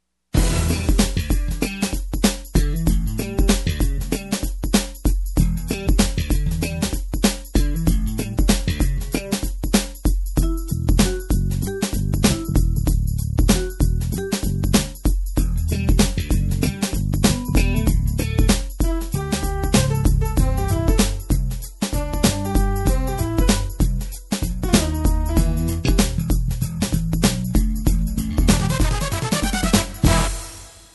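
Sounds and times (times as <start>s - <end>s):
night music beat: 0.4s - 30.9s.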